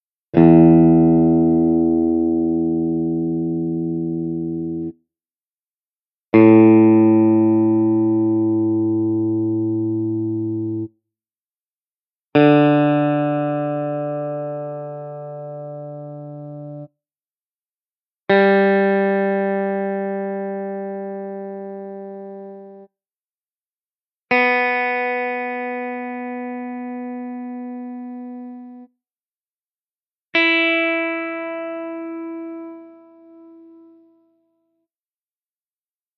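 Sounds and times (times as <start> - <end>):
guitar: 0.3 - 5.0, 6.3 - 11.0, 12.3 - 17.0, 18.3 - 22.9, 24.3 - 29.0, 30.3 - 34.7.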